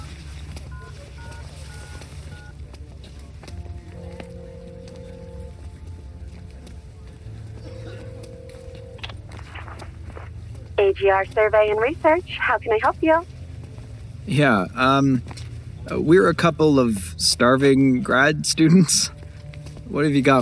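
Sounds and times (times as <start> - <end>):
telephone ringing tones: 4.0 - 5.6, 7.7 - 13.2
speech: 10.9 - 13.3, 14.3 - 15.3, 15.9 - 19.2, 19.9 - 20.4.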